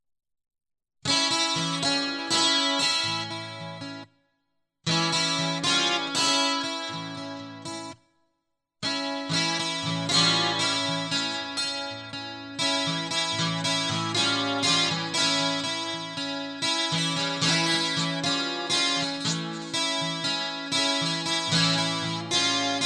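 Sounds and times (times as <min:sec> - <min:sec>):
guitar loop: 0:01.1 - 0:04.1, 0:04.9 - 0:08.0, 0:08.8 - 0:22.8.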